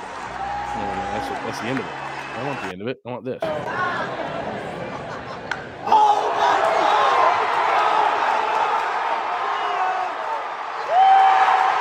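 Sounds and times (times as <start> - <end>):
large ballpark crowd cheering: 0.0 - 2.8, 3.4 - 11.7
scattered yells: 0.2 - 2.7, 5.8 - 11.7
speech: 1.3 - 4.8.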